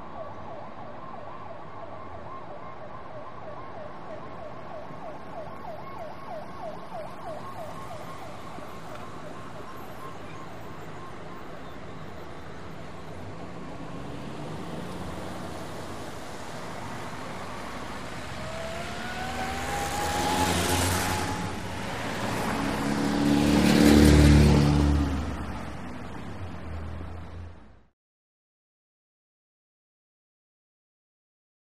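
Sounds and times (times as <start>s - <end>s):
two trucks pulling in and passing by: 6.3s - 27.9s
wet traffic passing by: 13.4s - 27.2s.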